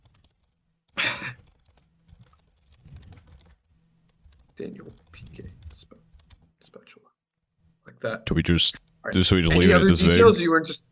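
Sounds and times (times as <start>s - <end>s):
computer keyboard typing an AI prompt: 0.0s - 0.6s, 1.3s - 6.5s
speech: 4.6s - 6.0s, 8.0s - 10.8s.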